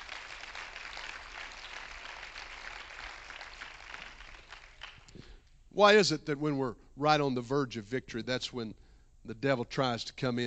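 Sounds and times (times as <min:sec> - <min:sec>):
audience clapping hands: 0:00.0 - 0:05.3
speech: 0:05.8 - 0:10.4.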